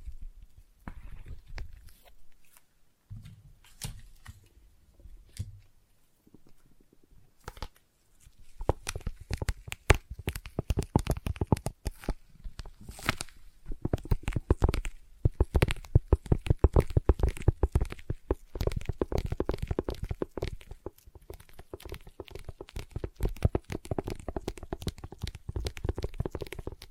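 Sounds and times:
sticky peeling: 7.5 - 26.9
sticky tapping and tacky crackles: 8.6 - 12.8, 13.7 - 26.9.

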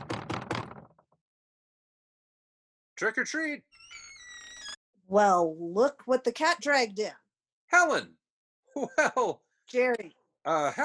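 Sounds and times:
knocking on a door: 0.0 - 1.0
speech: 3.0 - 4.0, 5.1 - 8.2, 8.8 - 10.8.

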